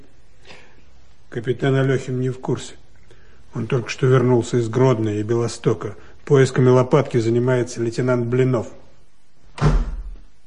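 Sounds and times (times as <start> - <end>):
speech: 1.3 - 2.8, 3.6 - 8.8
door jerked shut with a slam: 9.5 - 10.3.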